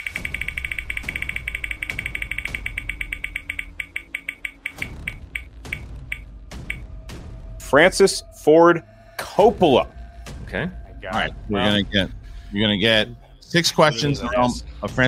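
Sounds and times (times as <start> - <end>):
prize wheel spinning on a quiz show: 0.0 - 6.8
speech: 7.7 - 15.0.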